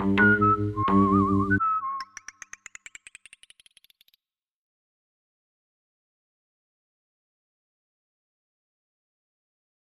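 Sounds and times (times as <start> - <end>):
whistling: 0.2 - 2.6.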